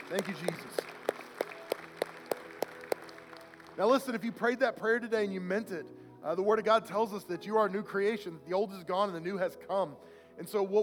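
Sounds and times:
audience applause: 0.0 - 4.3
speech: 0.1 - 0.9, 3.8 - 10.8.

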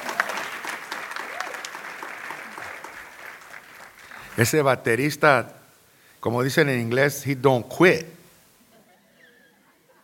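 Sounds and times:
audience applause: 0.0 - 4.6
speech: 4.4 - 5.6, 6.2 - 8.2.

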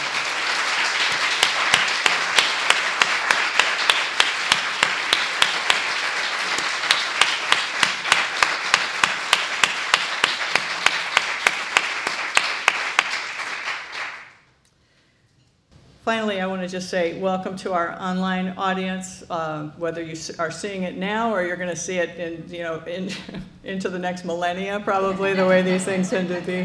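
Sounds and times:
audience applause at an event: 0.0 - 14.3
speech: 16.2 - 26.6
laughter: 24.8 - 26.6.

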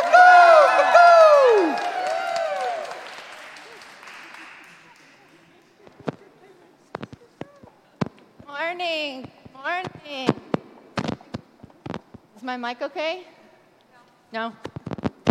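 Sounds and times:
whooping cheers: 0.0 - 3.8
audience clapping: 0.0 - 6.1
speech: 12.5 - 13.4, 14.3 - 14.7.

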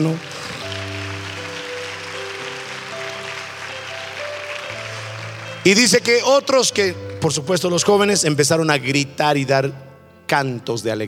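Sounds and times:
speech: 0.0 - 0.3, 5.6 - 11.0
audience applause: 0.0 - 7.3.

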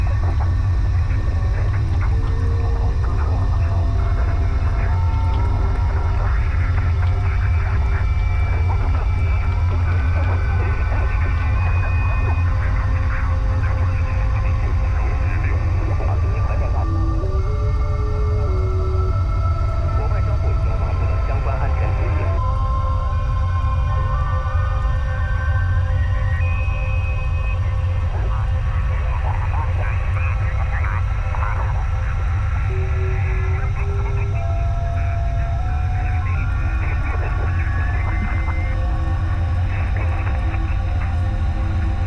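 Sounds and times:
arctic vessel engine idling: 0.0 - 42.0.

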